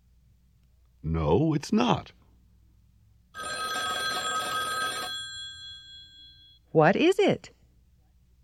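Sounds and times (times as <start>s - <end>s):
speech: 1.0s - 2.2s, 6.7s - 7.6s
telephone ringing: 3.4s - 6.6s.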